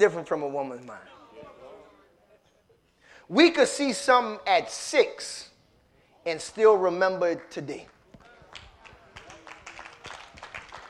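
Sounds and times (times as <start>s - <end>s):
speech: 0.0s - 1.5s, 3.3s - 5.5s, 6.2s - 7.9s
men in the audience clapping: 7.8s - 10.8s.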